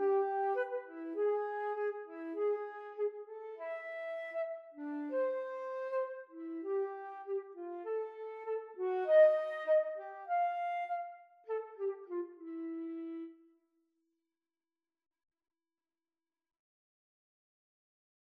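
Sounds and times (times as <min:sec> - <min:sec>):
flute duet: 0:00.0 - 0:13.4.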